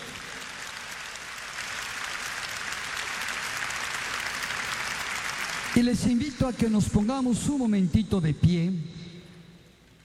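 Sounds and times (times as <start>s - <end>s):
audience applause: 0.0s - 6.2s
speech: 5.8s - 9.0s.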